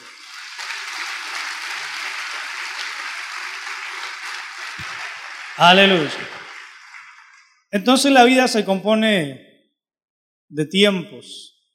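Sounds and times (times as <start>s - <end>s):
audience applause: 0.0s - 7.6s
speech: 5.6s - 6.4s, 7.7s - 9.5s, 10.5s - 11.5s.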